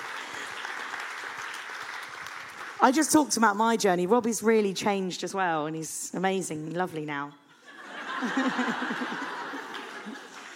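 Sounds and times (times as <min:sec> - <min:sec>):
crowd clapping: 0:00.0 - 0:02.9, 0:08.3 - 0:10.5
speech: 0:02.8 - 0:07.4, 0:08.2 - 0:09.3
laughter: 0:07.6 - 0:10.5.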